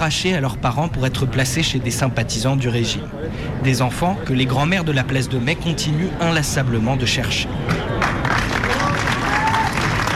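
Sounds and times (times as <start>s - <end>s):
speech: 0.0s - 8.1s
large crowd clapping as Estela de Carlotto arrives: 7.7s - 10.1s.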